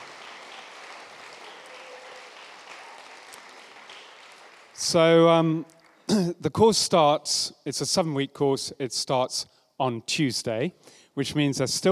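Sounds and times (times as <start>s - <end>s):
audience applause: 0.0s - 6.2s
speech: 4.8s - 11.9s.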